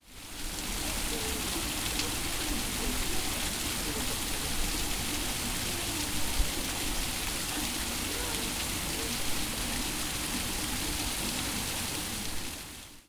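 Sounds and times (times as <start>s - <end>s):
fountain water: 0.0s - 13.0s.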